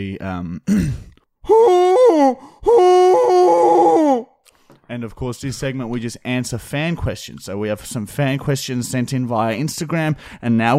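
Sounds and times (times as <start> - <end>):
speech: 0.0 - 3.9, 4.9 - 10.7
human voice imitating a llama being chased by a wolf: 1.4 - 4.3.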